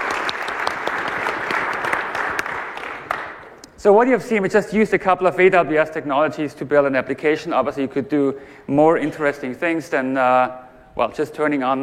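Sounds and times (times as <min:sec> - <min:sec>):
audience applause: 0:00.0 - 0:03.5
speech: 0:03.8 - 0:11.8.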